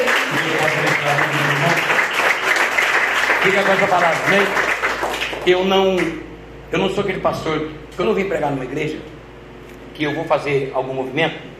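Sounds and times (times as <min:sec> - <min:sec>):
audience applauding: 0:00.0 - 0:06.1
speech: 0:03.4 - 0:04.7, 0:05.4 - 0:09.1, 0:10.0 - 0:11.5.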